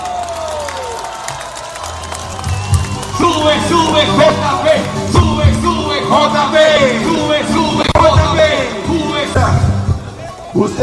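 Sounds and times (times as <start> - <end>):
crowd applauding: 0.0 - 6.9
crowd cheering and shouting: 0.0 - 10.8
speech: 3.2 - 5.2, 10.6 - 10.8.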